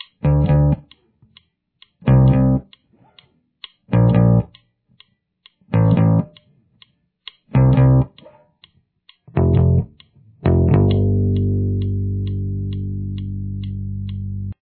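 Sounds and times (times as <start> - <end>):
bass: 0.0 - 0.9, 2.0 - 2.7, 3.9 - 4.6, 5.7 - 6.4, 7.5 - 8.2, 9.3 - 14.6.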